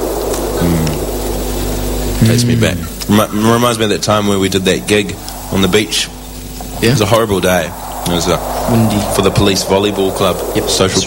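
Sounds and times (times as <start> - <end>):
analog synthesized ocean noise: 0.0 - 11.0
speech: 2.2 - 6.2, 6.8 - 11.0.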